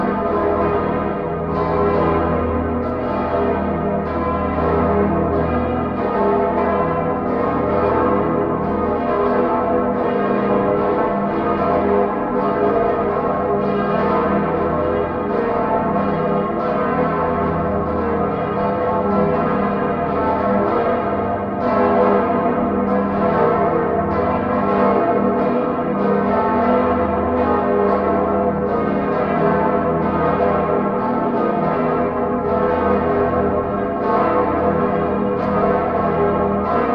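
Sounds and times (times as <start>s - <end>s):
full peal of church bells ringing: 0.0s - 36.9s.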